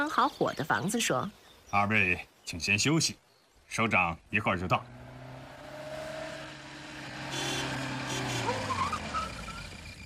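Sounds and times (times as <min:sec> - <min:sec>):
speech: 0:00.1 - 0:05.0
car arriving outside: 0:04.3 - 0:10.0.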